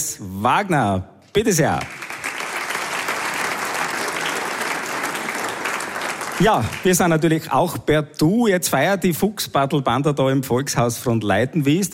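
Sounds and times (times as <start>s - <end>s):
speech: 0.1s - 2.0s, 6.4s - 11.9s
audience applause: 1.8s - 7.4s.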